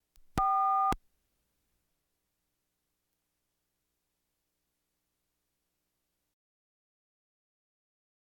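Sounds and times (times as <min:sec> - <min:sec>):
household telephones: 0:00.4 - 0:01.0.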